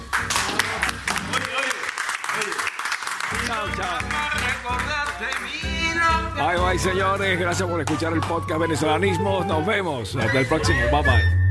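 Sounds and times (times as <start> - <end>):
applause: 0.0 - 5.8
speech: 6.5 - 11.4.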